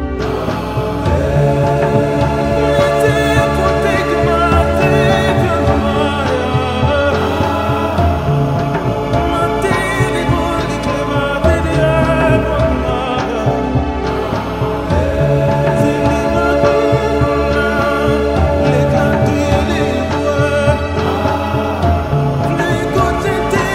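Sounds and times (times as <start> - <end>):
introit chant: 0.2 - 23.7.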